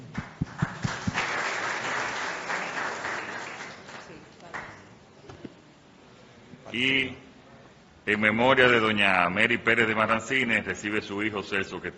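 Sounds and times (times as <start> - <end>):
audience applause: 0.0 - 4.7
speech: 6.7 - 7.2, 8.0 - 11.9.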